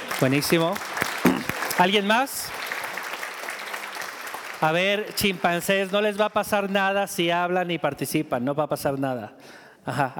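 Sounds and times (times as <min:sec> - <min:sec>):
applause: 0:00.0 - 0:06.8
speech: 0:00.2 - 0:01.0, 0:01.8 - 0:02.6, 0:04.6 - 0:10.1.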